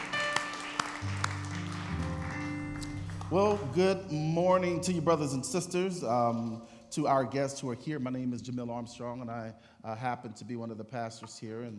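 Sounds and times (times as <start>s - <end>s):
audience clapping hands: 0.0s - 5.0s
speech: 3.3s - 11.7s.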